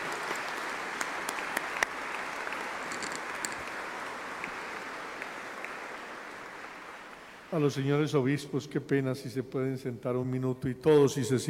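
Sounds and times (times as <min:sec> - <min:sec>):
audience applauding: 0:00.0 - 0:07.6
speech: 0:07.5 - 0:11.4.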